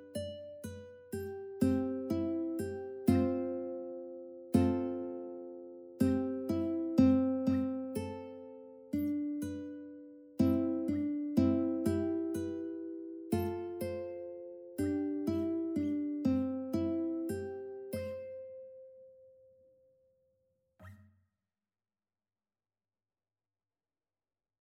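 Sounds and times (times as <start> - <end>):
ukulele: 0.0 - 18.5.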